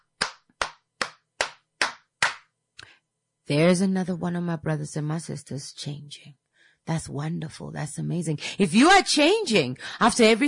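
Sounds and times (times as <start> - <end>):
hands clapping in applause: 0.0 - 2.5
speech: 3.5 - 10.4.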